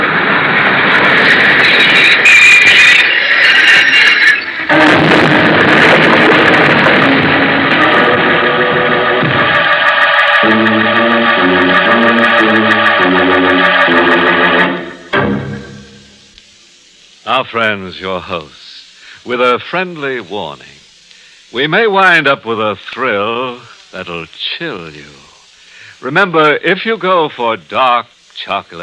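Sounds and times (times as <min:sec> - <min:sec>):
train pulling in with engine roar and hiss: 0:00.0 - 0:26.1
stepped tonal passage: 0:04.7 - 0:16.3
speech: 0:17.5 - 0:18.6, 0:19.2 - 0:20.7, 0:21.5 - 0:25.2, 0:26.0 - 0:28.8.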